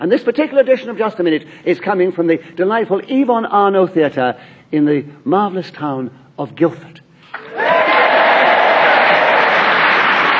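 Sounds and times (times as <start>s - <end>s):
speech: 0.0s - 7.6s
enthusiastic theatre audience in Guildford, Surrey cheering and applauding: 7.4s - 10.3s.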